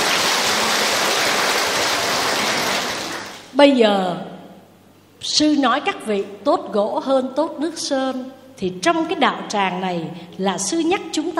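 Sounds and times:
audience applause: 0:00.0 - 0:03.5
speech: 0:03.6 - 0:04.3, 0:05.2 - 0:11.3.

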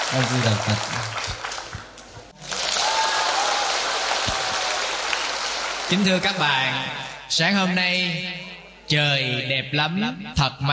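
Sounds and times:
loud audience applause: 0:00.0 - 0:06.7
speech: 0:00.1 - 0:01.2, 0:05.9 - 0:10.7.

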